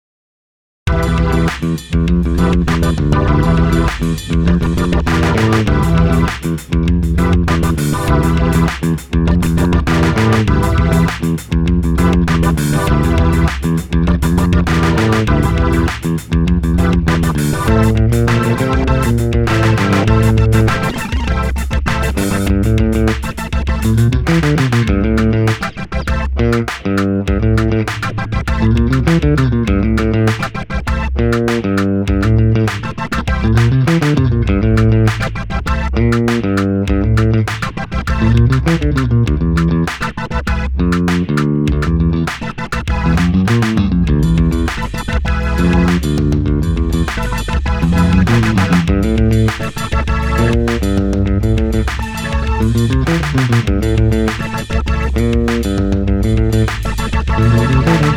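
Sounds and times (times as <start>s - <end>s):
spooky funk music with glasses: 0.9s - 58.1s.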